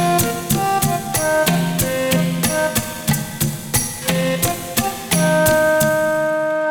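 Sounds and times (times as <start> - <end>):
welcome drum playing: 0.0 - 6.6.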